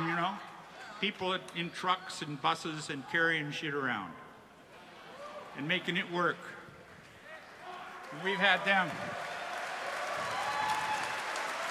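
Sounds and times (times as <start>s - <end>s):
speech: 0.3s - 4.2s, 5.6s - 6.6s, 8.1s - 9.3s
people clapping: 6.8s - 11.6s.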